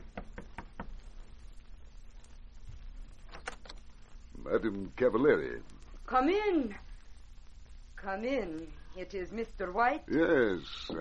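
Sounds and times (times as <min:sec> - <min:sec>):
knocking on a door: 0:00.1 - 0:01.0
speech: 0:04.5 - 0:06.8, 0:08.0 - 0:10.9.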